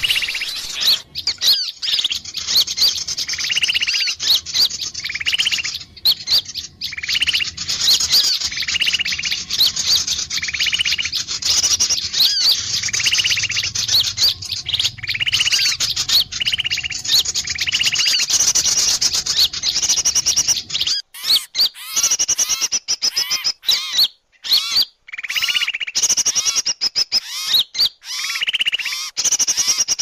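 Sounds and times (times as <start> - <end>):
faint low hum: 0.0 - 21.3
buzzy rattling bird trills: 0.0 - 30.0.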